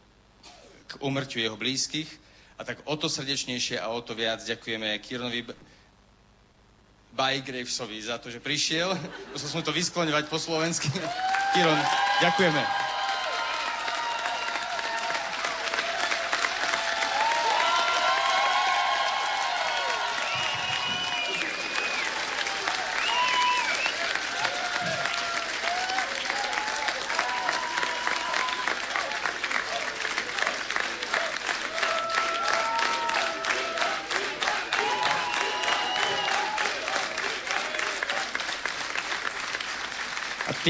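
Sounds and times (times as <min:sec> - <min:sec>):
speech: 0:00.9 - 0:05.8, 0:07.2 - 0:12.8
laughter: 0:08.9 - 0:10.0
audience applause: 0:10.7 - 0:40.6.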